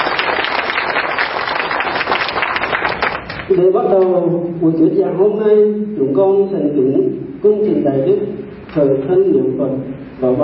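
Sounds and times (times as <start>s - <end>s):
audience applause at a Vietnamese Buddhist Dharma talk: 0.0s - 3.4s
speech: 3.6s - 10.4s.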